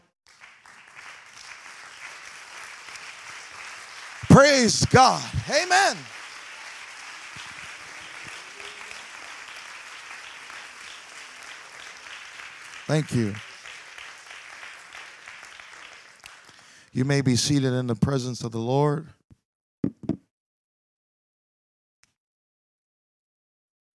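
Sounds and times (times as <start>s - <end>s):
audience clapping: 0.0s - 17.6s
speech: 4.4s - 6.2s, 12.9s - 13.5s, 17.0s - 19.2s.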